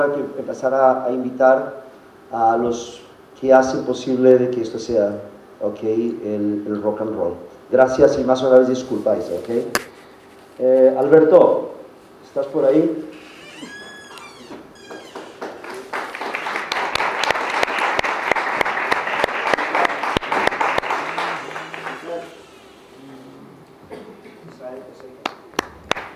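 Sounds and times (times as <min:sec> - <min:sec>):
speech: 0:00.0 - 0:09.9, 0:10.6 - 0:11.7, 0:12.4 - 0:13.7
audience applause: 0:14.8 - 0:22.5, 0:25.6 - 0:26.1.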